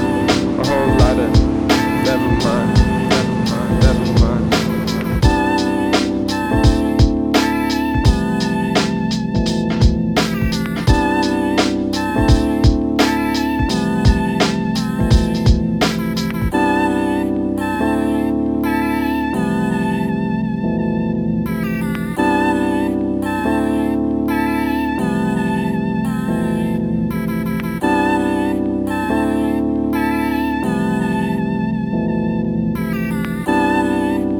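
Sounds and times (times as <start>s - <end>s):
boom bap beat at 80 BPM: 0.0s - 16.5s
vocals: 0.0s - 34.3s.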